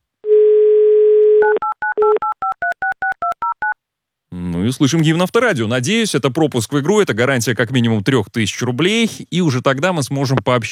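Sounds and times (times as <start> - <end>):
telephone dial tone: 0.3 - 3.8
speech: 4.3 - 10.7.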